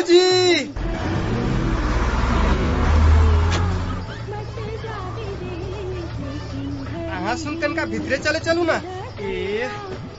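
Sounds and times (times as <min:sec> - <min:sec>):
bus engine rumbling: 0:00.0 - 0:10.1
speech: 0:07.4 - 0:10.1.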